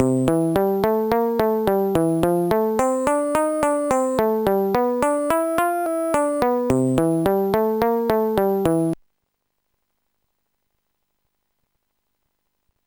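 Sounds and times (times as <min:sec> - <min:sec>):
bass: 0:00.0 - 0:09.0.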